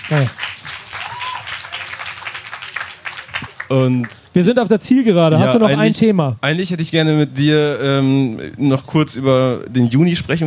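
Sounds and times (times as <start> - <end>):
applause: 0.0 - 4.3
speech: 0.1 - 0.6, 3.7 - 10.4.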